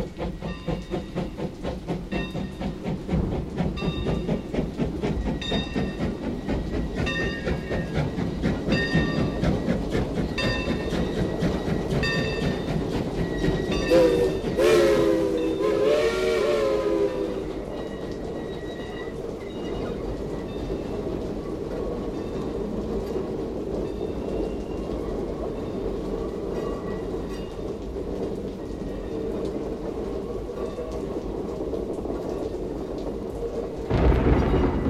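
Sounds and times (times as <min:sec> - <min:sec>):
steam train running: 0:00.0 - 0:34.8
thunder: 0:31.0 - 0:34.8.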